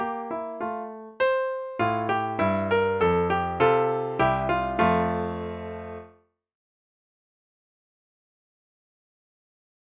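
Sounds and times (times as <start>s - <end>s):
classical music piece: 0.0s - 6.1s.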